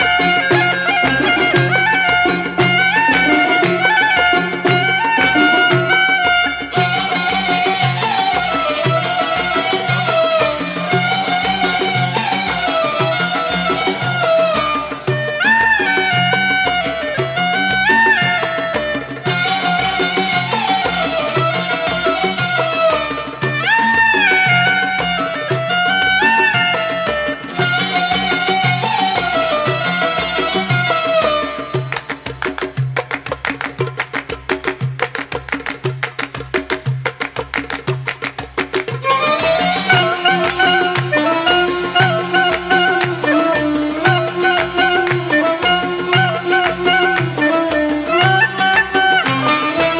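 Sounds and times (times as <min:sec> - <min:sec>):
saxophone: 0:00.0 - 0:49.9.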